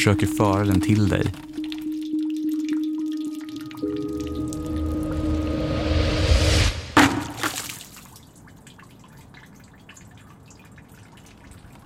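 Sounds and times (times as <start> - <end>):
speech: 0.0 - 1.5
water dripping into a bucket: 0.0 - 5.6, 7.0 - 11.8
sharp knock: 6.9 - 7.5.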